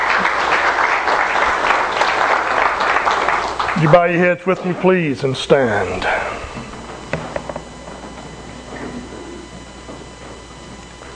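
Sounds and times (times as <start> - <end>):
audience applause: 0.0 - 6.6
speech: 3.8 - 6.4.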